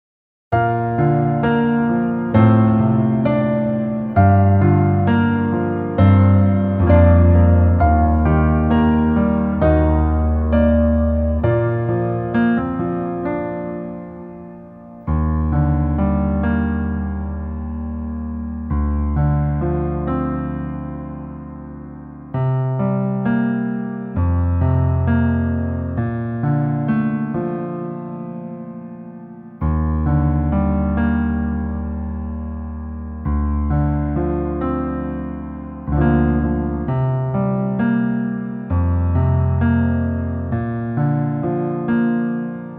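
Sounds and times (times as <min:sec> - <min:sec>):
piano music: 0:00.5 - 0:42.7.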